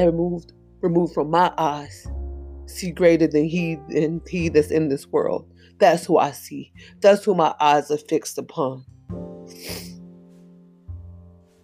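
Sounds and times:
speech: 0:00.0 - 0:09.9
person sniffling: 0:09.5 - 0:10.0.

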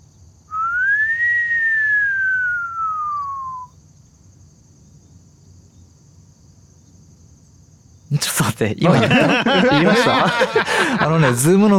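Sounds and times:
voice imitating a whistling pyuu sound: 0:00.5 - 0:03.7
laughter: 0:08.1 - 0:11.7
speech: 0:08.2 - 0:11.7.

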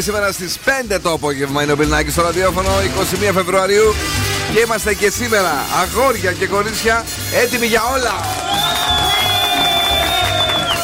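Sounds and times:
speech: 0:00.0 - 0:09.0
crowd clapping and cheering: 0:08.1 - 0:10.8
long steady whistle: 0:08.6 - 0:10.8.

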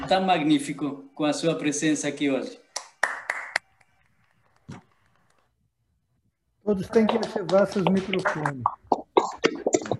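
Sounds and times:
speech: 0:00.1 - 0:02.6, 0:06.7 - 0:09.0
scattered hand claps from participants: 0:02.7 - 0:03.9, 0:07.0 - 0:09.9.

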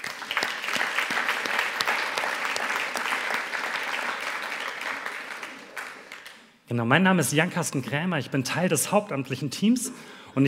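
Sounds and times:
audience applause: 0:00.0 - 0:06.5
speech: 0:06.7 - 0:10.4.

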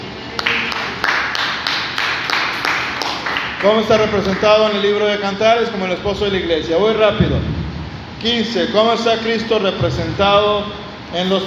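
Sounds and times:
audience applause: 0:00.4 - 0:04.8
speech: 0:03.6 - 0:07.6, 0:08.2 - 0:11.4.

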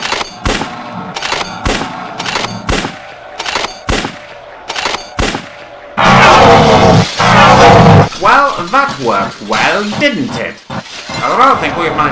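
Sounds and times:
rapid gunfire in a military scene of an audio drama: 0:00.0 - 0:05.8
dense roaring burst of noise: 0:06.0 - 0:08.2
speech: 0:09.0 - 0:10.6, 0:11.2 - 0:12.1.

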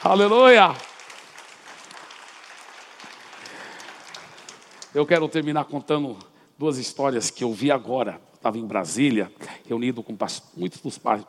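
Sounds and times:
speech: 0:00.0 - 0:00.9, 0:05.0 - 0:11.2
audience applause: 0:00.0 - 0:05.3.

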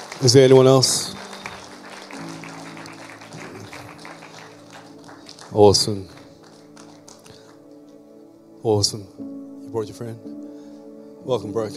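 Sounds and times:
church congregation clapping during a Sunday evening service: 0:00.0 - 0:08.1
speech: 0:00.2 - 0:01.2, 0:05.6 - 0:06.2, 0:08.6 - 0:10.3, 0:11.2 - 0:11.7.

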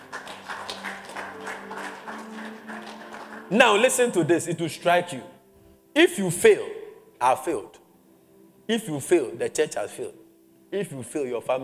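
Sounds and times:
audience clapping: 0:00.0 - 0:04.2
speech: 0:03.5 - 0:05.4, 0:06.0 - 0:07.8, 0:08.7 - 0:11.6.

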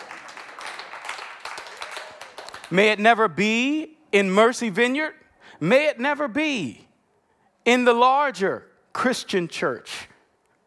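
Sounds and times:
audience clapping: 0:00.0 - 0:02.8
speech: 0:02.7 - 0:06.8, 0:07.6 - 0:10.1.

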